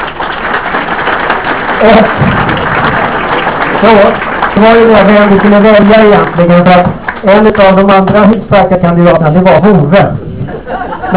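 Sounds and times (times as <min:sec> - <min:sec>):
audience applause: 0:00.0 - 0:07.5
speech: 0:01.8 - 0:02.4, 0:03.8 - 0:10.2
laughter: 0:10.4 - 0:11.1.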